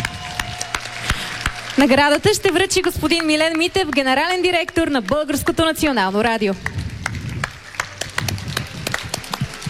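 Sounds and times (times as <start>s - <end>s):
audience applause: 0.0s - 4.0s, 6.6s - 9.6s
speech: 1.8s - 6.8s.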